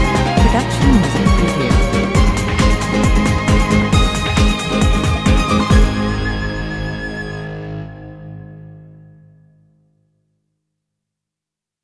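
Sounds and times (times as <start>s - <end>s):
gypsy drive music: 0.0s - 7.4s.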